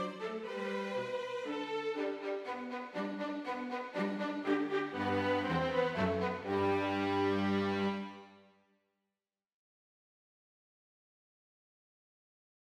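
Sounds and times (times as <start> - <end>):
violin and cello playing a minuet: 0.0 - 8.4.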